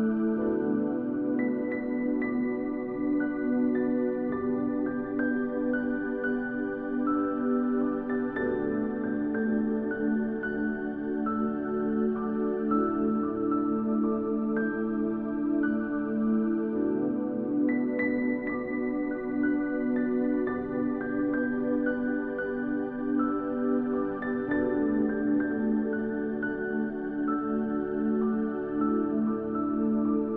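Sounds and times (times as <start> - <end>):
instrumental piano worship music: 0.0 - 30.3.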